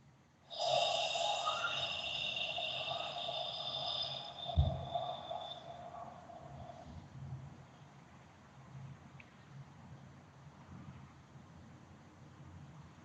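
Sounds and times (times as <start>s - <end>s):
long out-breath releasing all the air from belly and chest: 0.5s - 7.1s.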